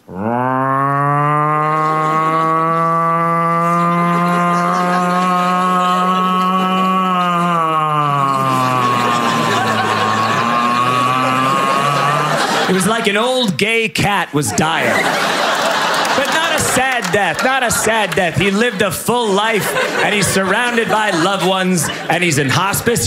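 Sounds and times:
voice imitating an old-fashioned siren: 0.0s - 12.5s
laughter: 0.2s - 13.5s, 14.4s - 23.0s
speech: 13.0s - 15.3s, 17.1s - 23.0s.

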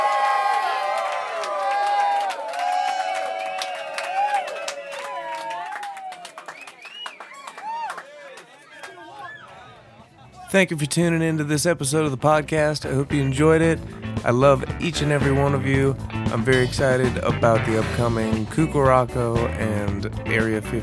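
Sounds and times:
overlapping whoops and shouts: 0.0s - 6.4s, 7.3s - 8.2s
crowd clapping: 0.0s - 9.7s
speech: 10.5s - 20.8s.

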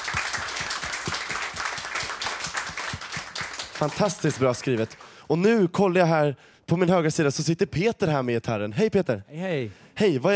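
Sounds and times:
crowd applause: 0.0s - 5.0s
speech: 3.8s - 10.3s.

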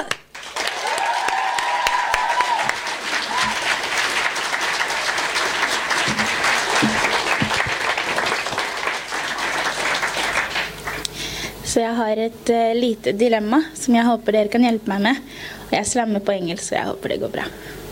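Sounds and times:
audience applause: 0.0s - 11.1s
speech: 11.8s - 17.8s.

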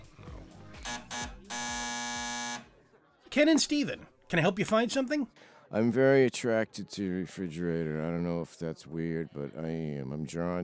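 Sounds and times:
door entry buzzer: 0.8s - 2.7s
speech: 3.4s - 10.6s.

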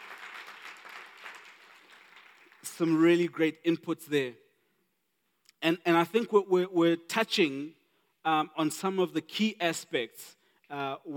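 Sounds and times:
audience applause: 0.0s - 2.6s
speech: 2.8s - 4.4s, 5.6s - 11.1s.

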